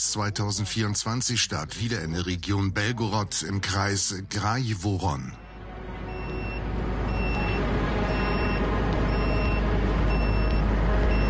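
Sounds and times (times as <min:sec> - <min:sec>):
speech: 0:00.0 - 0:05.4
drone detector beeping: 0:06.1 - 0:11.2.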